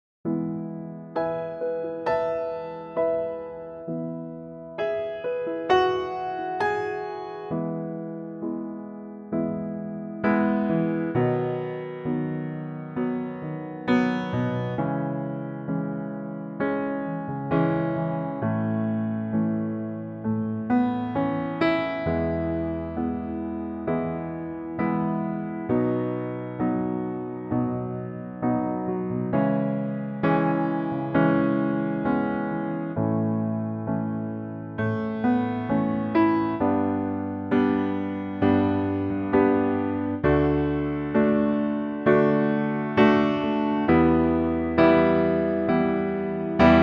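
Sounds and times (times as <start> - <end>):
piano: 0.0 - 46.8.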